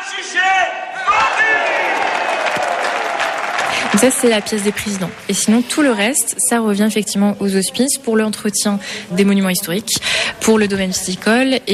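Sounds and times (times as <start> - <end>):
crowd shouting together: 0.0 - 4.0
speech: 3.9 - 11.7.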